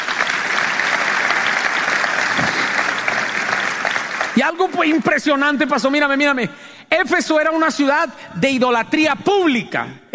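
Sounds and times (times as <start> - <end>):
audience applause: 0.0 - 5.4
speech: 4.4 - 10.1.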